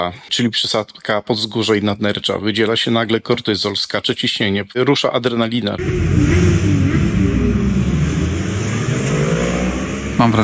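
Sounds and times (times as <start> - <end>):
speech: 0.0 - 6.9, 10.2 - 10.4
motorcycle engine roaring: 5.8 - 10.4.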